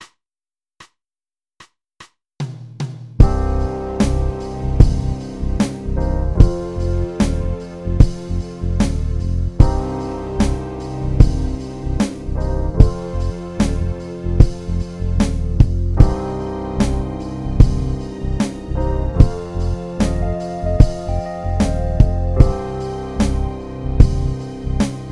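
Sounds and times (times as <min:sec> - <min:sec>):
keyboard playing: 0:03.2 - 0:25.0.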